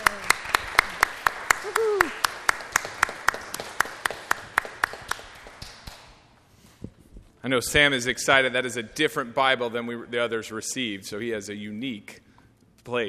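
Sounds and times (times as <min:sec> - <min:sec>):
audience clapping in celebration: 0:00.0 - 0:06.3
speech: 0:07.5 - 0:12.2, 0:12.8 - 0:13.0.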